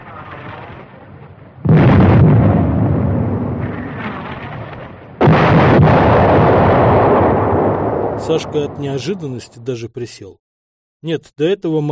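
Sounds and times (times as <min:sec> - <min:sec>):
artillery gun firing shells: 0:01.6 - 0:08.8
speech: 0:08.3 - 0:10.4, 0:11.0 - 0:11.9.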